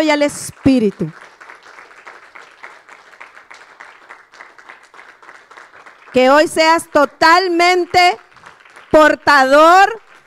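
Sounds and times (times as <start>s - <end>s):
speech: 0.0s - 1.3s, 6.1s - 8.3s, 8.9s - 10.0s
audience applause: 0.6s - 6.2s, 8.2s - 9.0s, 10.0s - 10.2s.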